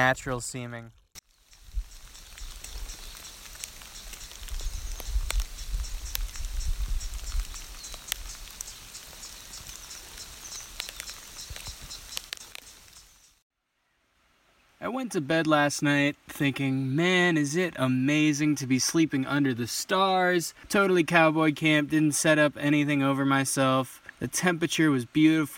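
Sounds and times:
speech: 0:00.0 - 0:01.0, 0:15.0 - 0:25.5
water flowing between tiered hot spring tubs: 0:01.1 - 0:13.4.

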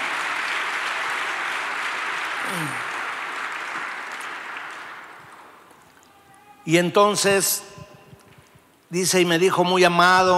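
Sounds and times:
audience applause: 0:00.0 - 0:06.2
speech: 0:02.5 - 0:02.9, 0:06.6 - 0:07.8, 0:08.9 - 0:10.3.

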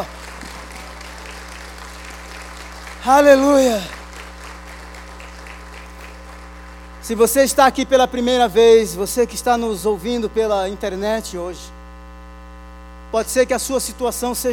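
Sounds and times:
audience applause: 0:00.0 - 0:07.3
speech: 0:03.0 - 0:04.0, 0:07.1 - 0:11.8, 0:13.1 - 0:14.5.

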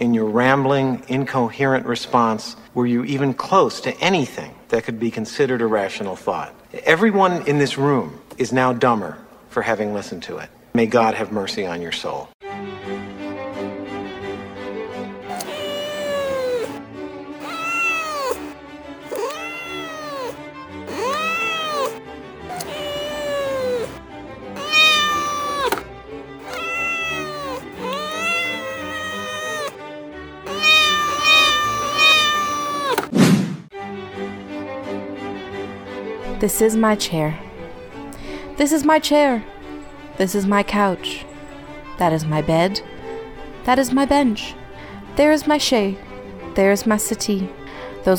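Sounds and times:
speech: 0:00.0 - 0:12.5, 0:36.4 - 0:37.5, 0:38.6 - 0:39.6, 0:40.2 - 0:41.3, 0:42.0 - 0:42.9, 0:43.6 - 0:44.6, 0:45.2 - 0:48.1
cat meowing: 0:15.3 - 0:16.8, 0:17.4 - 0:24.0, 0:24.6 - 0:29.8, 0:30.5 - 0:33.1.

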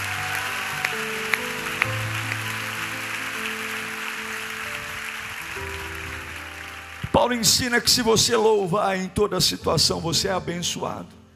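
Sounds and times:
audience applause: 0:00.0 - 0:08.0
speech: 0:07.2 - 0:11.2.

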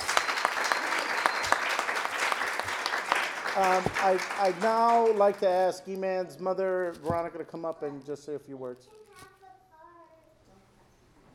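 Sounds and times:
audience applause for a first responder: 0:00.0 - 0:05.5
speech: 0:03.6 - 0:09.0.

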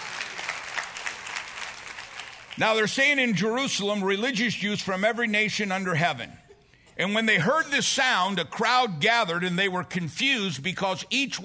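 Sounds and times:
audience clapping: 0:00.0 - 0:02.9
speech: 0:02.6 - 0:06.4, 0:07.0 - 0:11.4.

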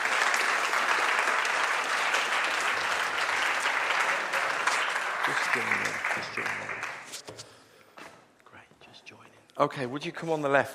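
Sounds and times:
crowd clapping: 0:00.0 - 0:07.3
speech: 0:05.3 - 0:07.4, 0:09.6 - 0:10.7.

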